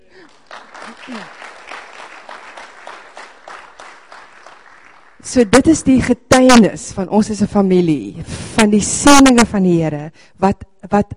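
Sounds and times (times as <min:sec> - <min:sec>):
church congregation applauding: 0:00.0 - 0:05.4
voices cheering: 0:00.6 - 0:05.0
speech: 0:01.1 - 0:01.4, 0:05.2 - 0:11.1.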